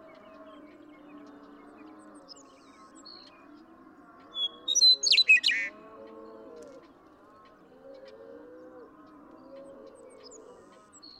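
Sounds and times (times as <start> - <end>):
Western meadowlark singing whistles and warbles: 4.3 - 5.7.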